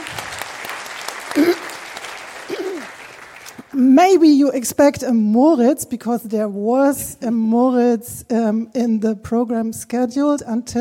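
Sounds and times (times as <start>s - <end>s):
audience applause: 0.0s - 3.8s
speech: 3.8s - 10.7s.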